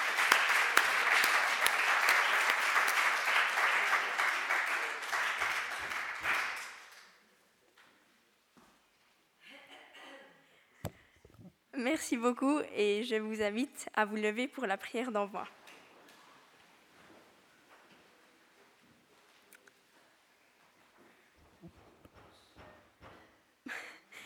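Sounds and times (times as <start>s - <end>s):
audience applause: 0.0s - 7.2s
speech: 11.8s - 15.6s.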